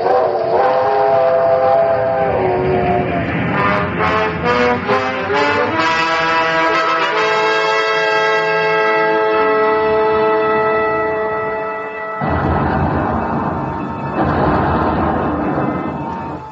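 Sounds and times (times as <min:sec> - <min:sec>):
train whistle blowing: 0:00.0 - 0:03.0, 0:03.6 - 0:12.2
train rumbling: 0:00.0 - 0:07.0, 0:09.2 - 0:16.5.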